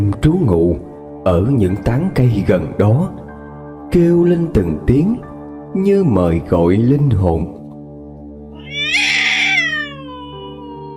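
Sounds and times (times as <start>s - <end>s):
speech: 0.0s - 3.2s, 3.9s - 7.6s
wild cat meowing at night beneath a tree: 8.6s - 10.9s.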